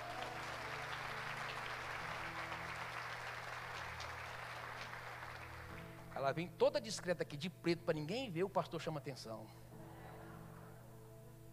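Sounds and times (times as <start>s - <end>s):
crowd applauding: 0.0s - 6.4s
speech: 6.2s - 9.7s.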